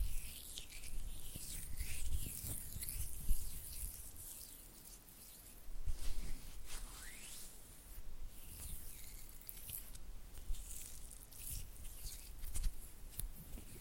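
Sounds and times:
oily hands rubbing and fingers fluttering: 0.0s - 13.7s.

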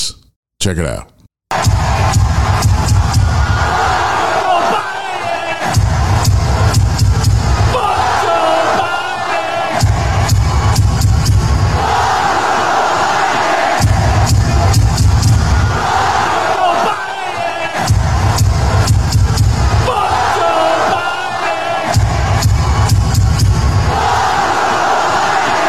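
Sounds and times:
speech: 0.6s - 2.2s
stadium crowd chanting in unison: 1.5s - 25.6s.

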